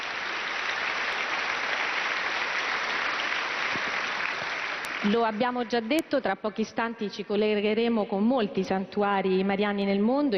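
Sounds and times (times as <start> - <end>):
applause: 0.0 - 6.1
speech: 5.0 - 10.3.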